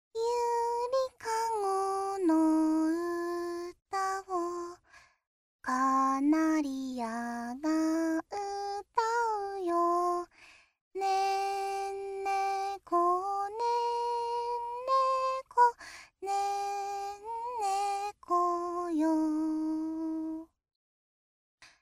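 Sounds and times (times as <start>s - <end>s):
lullaby: 0.2s - 20.6s.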